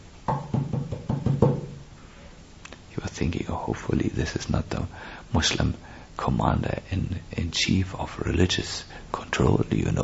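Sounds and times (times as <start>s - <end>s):
knocking at a wooden door: 0.3s - 1.8s
speech: 3.2s - 10.0s.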